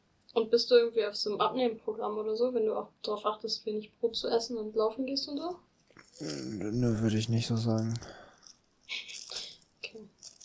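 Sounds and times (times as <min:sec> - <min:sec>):
speech: 0:00.4 - 0:08.2
plastic bag holding two screws crinkling: 0:07.5 - 0:10.4.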